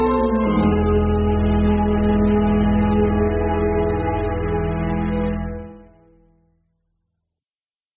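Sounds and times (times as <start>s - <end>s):
1970s orchestral melody in a major key: 0.0s - 6.2s.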